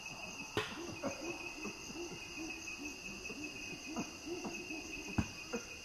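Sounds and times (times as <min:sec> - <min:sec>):
Common chimpanzee screaming harsh high calls: 0:00.1 - 0:05.7.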